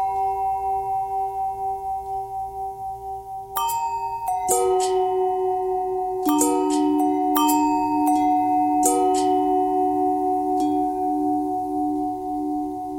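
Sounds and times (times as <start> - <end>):
long bell tone bending: 0.0 - 12.9.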